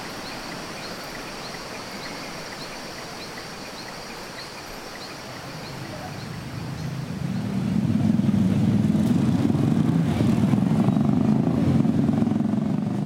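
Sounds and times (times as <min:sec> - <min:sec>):
mototaxi engine droning: 0:06.4 - 0:13.0.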